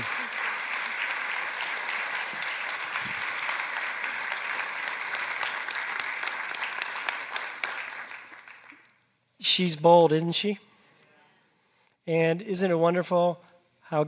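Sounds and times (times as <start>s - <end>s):
audience applause: 0.0s - 8.9s
speech: 9.5s - 10.7s, 12.1s - 14.0s.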